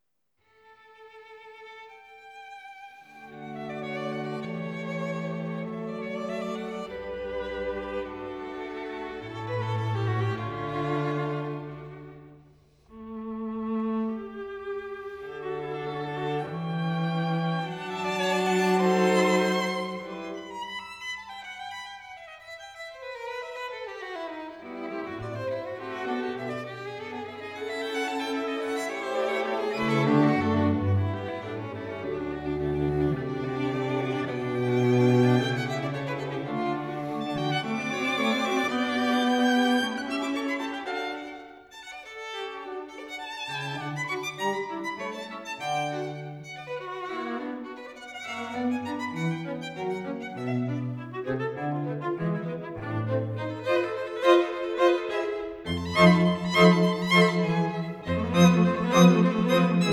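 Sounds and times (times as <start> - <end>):
string quartet playing an allegro in D major: 0.9 - 59.9.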